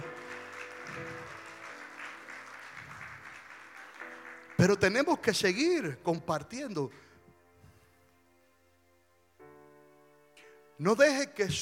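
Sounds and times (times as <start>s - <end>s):
audience applause: 0.0s - 5.2s
speech: 4.6s - 7.1s, 10.8s - 11.6s.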